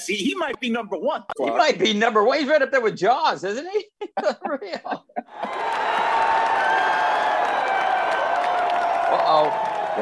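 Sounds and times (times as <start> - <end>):
speech: 0.0 - 5.9, 9.1 - 9.9
laughter: 4.0 - 6.2
crowd cheering: 5.2 - 9.9
applause: 5.3 - 9.9.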